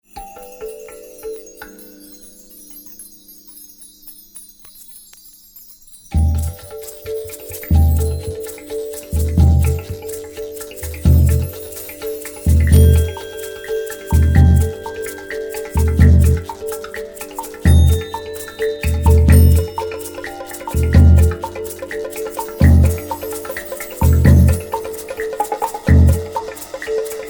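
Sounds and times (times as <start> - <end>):
four drummers playing: 6.2 - 27.2.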